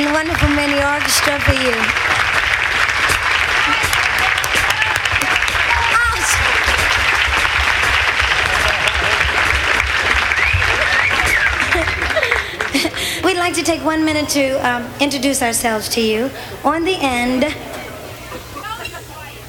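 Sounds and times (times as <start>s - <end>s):
speech: 0.0s - 2.3s, 13.5s - 17.6s
applause: 0.0s - 13.2s
laughter: 1.2s - 13.8s, 16.3s - 19.4s.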